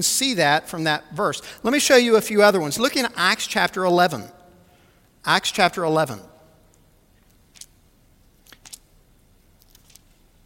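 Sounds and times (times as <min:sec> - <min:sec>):
speech: 0:00.0 - 0:04.4, 0:05.2 - 0:06.3
low hum: 0:00.0 - 0:10.4
Bible pages being turned: 0:08.4 - 0:08.9, 0:09.6 - 0:10.2.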